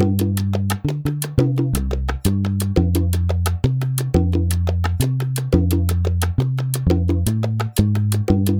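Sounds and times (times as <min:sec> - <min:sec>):
salsa bass line in G minor: 0:00.0 - 0:08.5.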